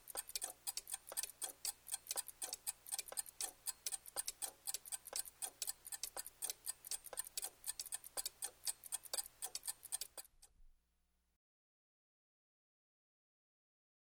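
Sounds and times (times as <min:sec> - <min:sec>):
several mantel clocks ticking: 0:00.0 - 0:10.5.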